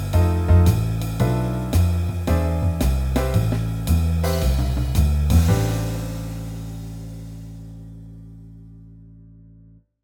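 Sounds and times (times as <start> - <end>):
backing track for a solo: 0.0 - 7.9.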